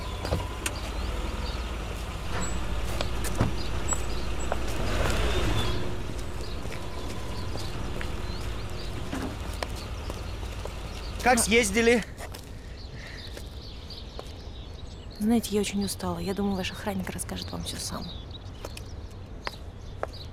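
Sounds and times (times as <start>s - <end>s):
car engine rumbling as the car drives through gates into a yard: 0.0s - 12.6s
speech: 11.3s - 12.1s, 15.3s - 18.2s.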